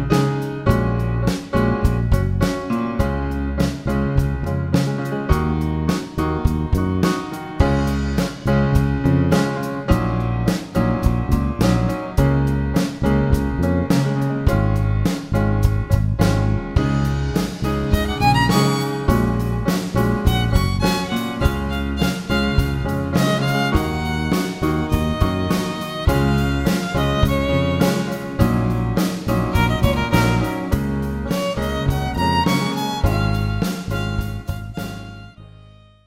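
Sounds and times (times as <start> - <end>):
drums: 0.0 - 35.4
piano: 0.0 - 36.0
violin: 17.3 - 36.0.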